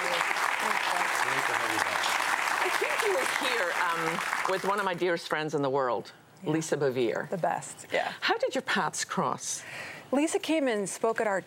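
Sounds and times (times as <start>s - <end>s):
audience applause welcoming a guest: 0.0s - 5.0s
speech: 3.1s - 11.4s.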